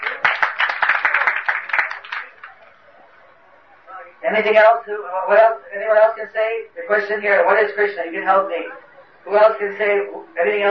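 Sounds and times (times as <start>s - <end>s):
audience applause: 0.0s - 3.2s
speech: 4.3s - 10.6s.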